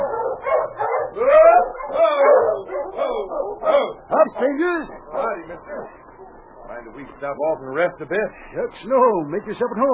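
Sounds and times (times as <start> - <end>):
sled dogs barking: 0.0 - 6.9
speech: 4.2 - 6.0, 6.8 - 9.9.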